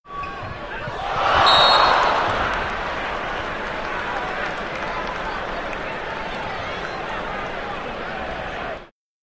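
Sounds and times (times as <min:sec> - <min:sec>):
basketball game crowd in a sports arena: 0:00.1 - 0:08.9.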